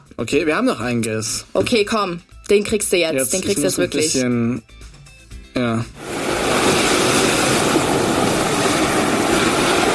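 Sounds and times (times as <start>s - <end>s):
speech: 0.2s - 4.9s, 5.6s - 6.0s
ocean waves: 6.0s - 9.9s.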